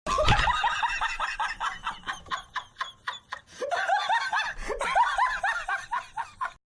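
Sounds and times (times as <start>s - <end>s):
person laughing: 0.1s - 6.6s.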